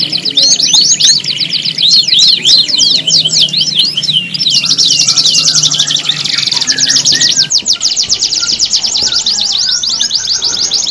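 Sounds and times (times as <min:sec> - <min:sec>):
domestic canary singing with trills, buzzy rolls and sweeping chirps: 0:00.0 - 0:10.9.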